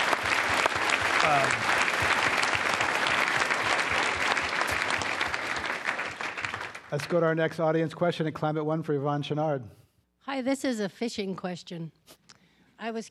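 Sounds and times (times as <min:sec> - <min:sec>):
audience applause at a Climate One talk: 0:00.0 - 0:07.4
speech: 0:01.3 - 0:02.1, 0:06.9 - 0:12.2, 0:12.8 - 0:13.0.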